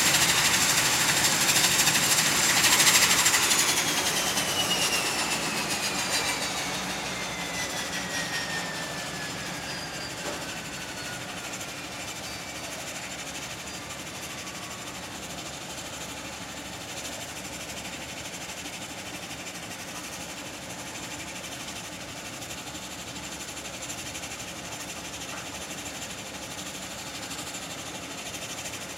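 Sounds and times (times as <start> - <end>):
Dash 8 airplane landing: 0.0 - 11.4.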